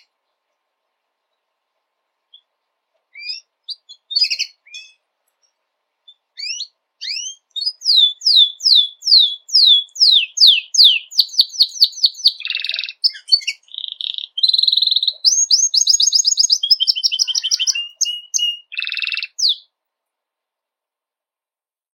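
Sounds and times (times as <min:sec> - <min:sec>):
white Belgian canary singing: 0:02.3 - 0:19.8.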